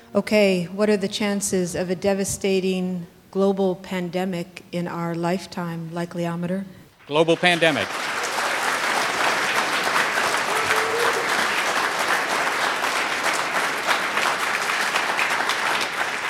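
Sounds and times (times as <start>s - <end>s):
speech: 0.1s - 8.1s
audience applause: 7.0s - 16.2s.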